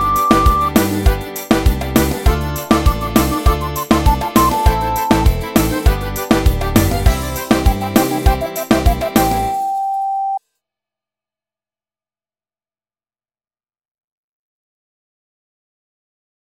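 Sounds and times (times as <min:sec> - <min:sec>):
forro music: 0:00.0 - 0:10.0.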